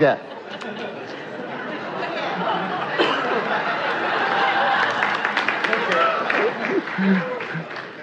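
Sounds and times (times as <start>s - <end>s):
laughter: 0.0s - 8.0s
audience applause: 2.2s - 8.0s.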